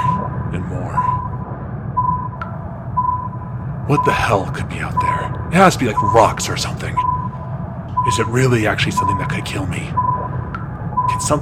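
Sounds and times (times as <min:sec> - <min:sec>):
sonar beeping: 0:00.0 - 0:11.4
speech: 0:03.9 - 0:07.1, 0:08.0 - 0:10.0, 0:11.2 - 0:11.4.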